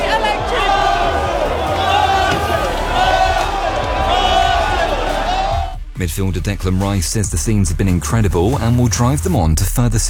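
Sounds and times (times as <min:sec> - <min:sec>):
crowd cheering at an open-top bus victory parade in Dublin: 0:00.0 - 0:05.8
speech: 0:06.0 - 0:10.0.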